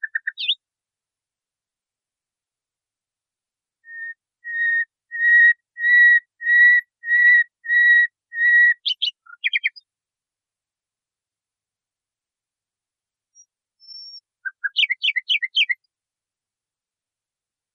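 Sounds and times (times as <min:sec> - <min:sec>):
nightingale song on a training recording for cage birds: 0:00.0 - 0:00.6, 0:03.8 - 0:09.9, 0:13.3 - 0:15.9.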